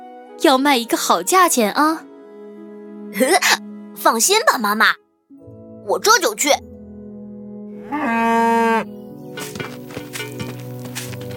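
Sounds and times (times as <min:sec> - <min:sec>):
speech: 0:00.4 - 0:02.1, 0:03.1 - 0:05.0, 0:05.8 - 0:06.7, 0:07.9 - 0:08.9
cow mooing: 0:07.8 - 0:08.9
scattered knocks and rustling: 0:09.4 - 0:11.3.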